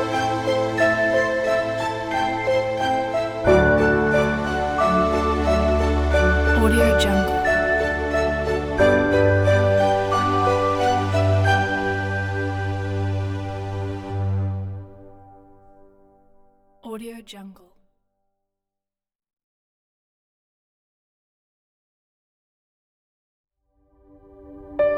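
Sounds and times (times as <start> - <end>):
warm inspirational piano music: 0.0 - 16.6, 24.4 - 24.9.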